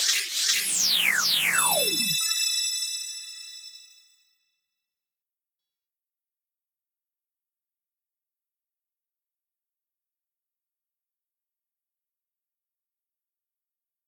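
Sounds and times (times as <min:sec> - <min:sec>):
backing track: 0:00.7 - 0:02.2.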